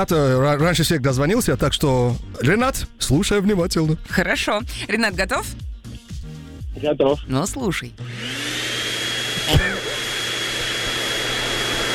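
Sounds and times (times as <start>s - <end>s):
speech: 0.0s - 5.7s, 6.8s - 8.4s, 9.5s - 9.8s
poplar fluff vacuum machine running in Moscow: 8.0s - 11.9s.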